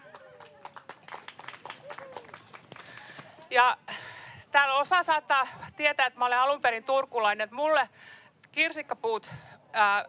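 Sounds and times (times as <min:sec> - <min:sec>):
applause: 0:00.0 - 0:03.5
speech: 0:03.5 - 0:10.0.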